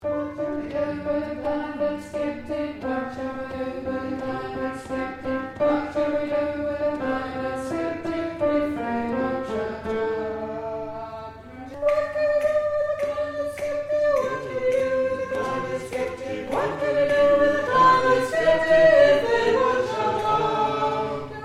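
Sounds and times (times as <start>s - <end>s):
tenor singing: 0.0s - 21.4s.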